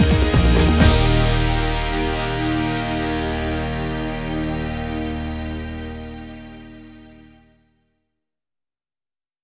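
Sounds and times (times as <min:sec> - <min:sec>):
karaoke singing: 0:00.0 - 0:06.2.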